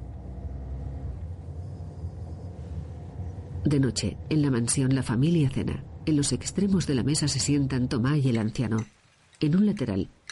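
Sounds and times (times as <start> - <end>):
car engine and road drone while driving in the film Happy End: 0.0 - 8.1
speech: 3.6 - 10.3.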